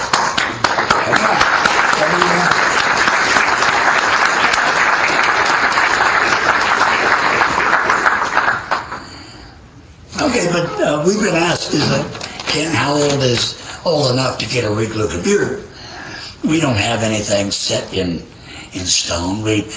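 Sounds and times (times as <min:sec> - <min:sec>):
crowd applauding: 0:00.0 - 0:09.2
speech: 0:11.0 - 0:15.7, 0:16.4 - 0:19.7.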